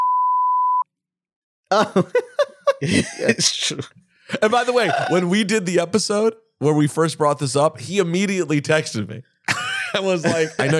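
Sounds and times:
censor bleep tone: 0.0 - 0.9
laughter: 1.7 - 5.4, 9.5 - 10.7
speech: 1.7 - 9.3, 9.9 - 10.7.

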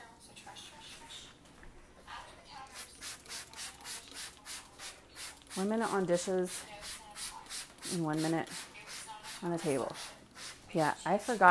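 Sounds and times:
spraying kitchen counters: 2.7 - 10.6
speech: 5.6 - 6.7, 7.9 - 8.7, 9.4 - 11.4.

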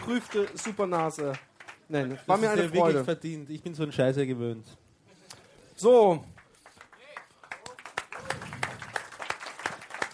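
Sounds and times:
audience applause: 0.0 - 2.4, 6.4 - 10.1
speech: 0.1 - 4.8, 5.8 - 6.4.

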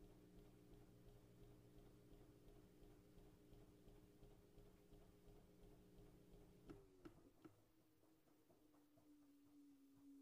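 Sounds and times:
washing machine running with a steady low hum: 0.0 - 7.5
faint rhythmic ticking: 0.0 - 10.2.

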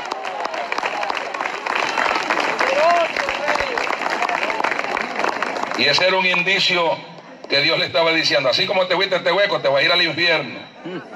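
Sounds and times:
voices calling out and cheering: 0.0 - 5.1
audience applause: 0.0 - 6.5
speech: 5.8 - 11.1.

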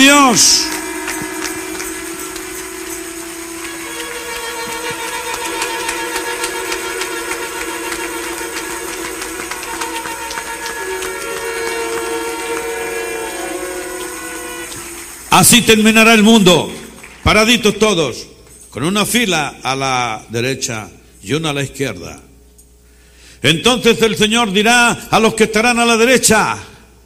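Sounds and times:
crowd voices humming and calling out: 0.0 - 15.5
audience applauding: 0.0 - 18.0
speech: 0.3 - 0.8, 15.4 - 22.3, 23.4 - 26.7.

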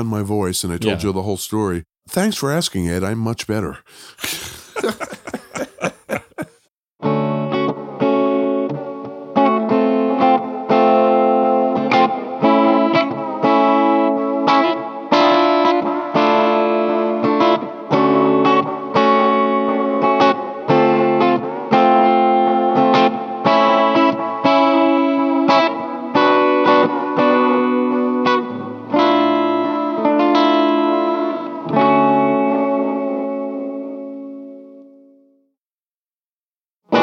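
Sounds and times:
speech: 0.0 - 5.2
laughter: 4.2 - 6.6
electric guitar playing mellow jazzy chords: 7.0 - 35.2, 36.9 - 37.0.

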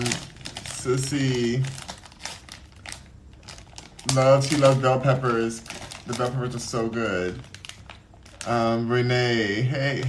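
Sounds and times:
low hum: 0.0 - 10.0
plastic chip bag crinkling: 0.0 - 10.0
speech: 0.8 - 1.8, 4.1 - 7.5, 8.4 - 10.0.

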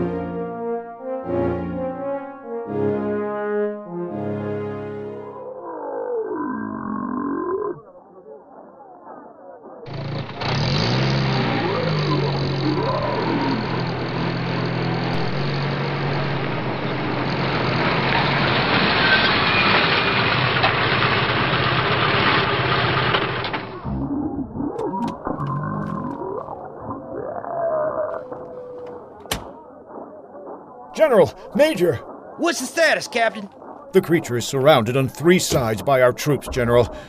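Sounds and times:
tonal sounds: 0.0 - 8.0, 23.7 - 37.0
Humvee engine running: 9.9 - 24.0
speech: 31.1 - 37.0.

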